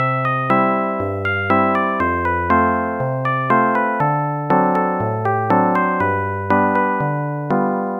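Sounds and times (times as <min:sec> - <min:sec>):
ragtime music: 0:00.0 - 0:07.9.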